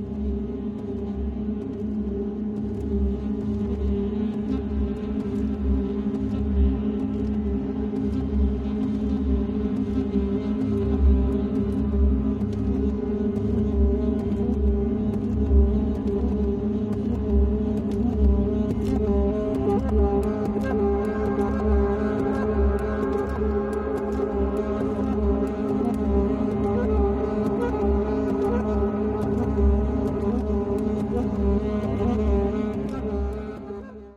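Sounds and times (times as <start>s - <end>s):
saxophone: 0.1s - 34.1s.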